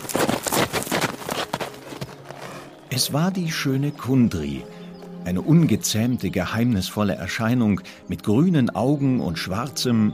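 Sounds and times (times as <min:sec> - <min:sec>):
hooves of a wild horse galloping fast: 0:00.0 - 0:02.7
speech: 0:02.9 - 0:10.1.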